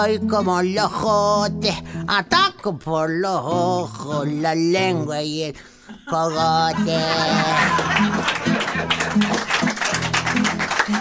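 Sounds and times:
speech: 0.0s - 9.7s
laughter: 5.8s - 10.9s
audience applause: 7.2s - 10.9s.

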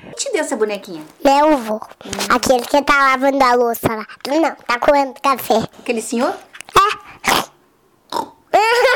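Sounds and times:
speech: 0.3s - 6.5s
person imitating a pig with snorts and grunting squeal: 6.7s - 8.8s.

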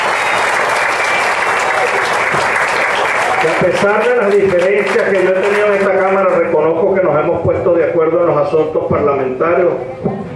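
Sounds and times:
audience applause: 0.0s - 6.5s
speech: 3.4s - 10.3s.

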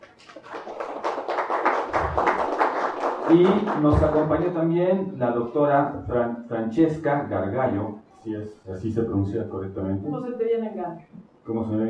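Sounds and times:
audience applause: 0.0s - 4.4s
speech: 3.3s - 11.8s.

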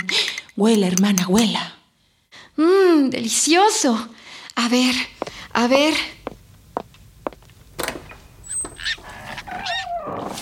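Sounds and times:
speech: 0.1s - 1.7s, 2.6s - 6.2s
piglet squealing: 8.5s - 10.0s.

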